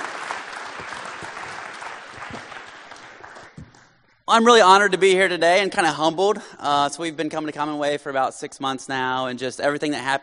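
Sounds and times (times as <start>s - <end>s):
church audience applauding a guest speaker: 0.0s - 4.2s
speech: 4.3s - 10.2s.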